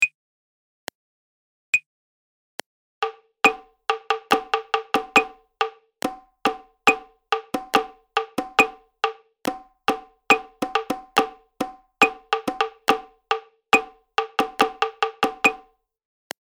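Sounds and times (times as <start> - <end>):
prepared rhythm: 3.0 - 15.7.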